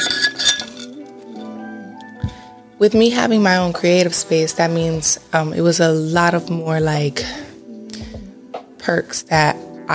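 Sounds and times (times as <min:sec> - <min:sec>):
glass clinking while taking a drink: 0:00.0 - 0:01.1
speech: 0:02.8 - 0:07.5, 0:08.8 - 0:09.9.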